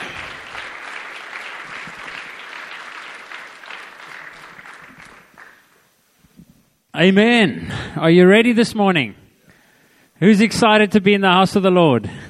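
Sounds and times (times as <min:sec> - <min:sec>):
church audience applauding a guest speaker: 0:00.0 - 0:05.9
speech: 0:07.0 - 0:09.2, 0:10.2 - 0:12.2.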